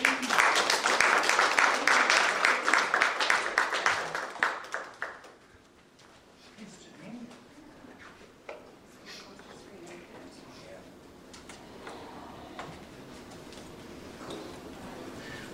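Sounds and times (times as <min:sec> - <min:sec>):
audience applause welcoming a speaker: 0:00.0 - 0:05.5.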